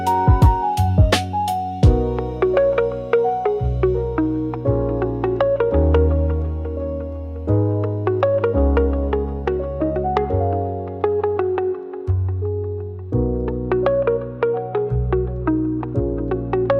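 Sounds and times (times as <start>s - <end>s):
dreamy floating relaxing lofi music: 0.0s - 16.7s.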